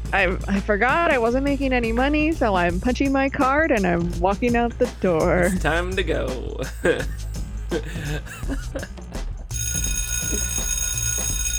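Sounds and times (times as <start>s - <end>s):
speech: 0.1s - 9.0s, 10.3s - 10.6s
laughter: 6.6s - 8.9s
bell ringing: 9.6s - 11.5s.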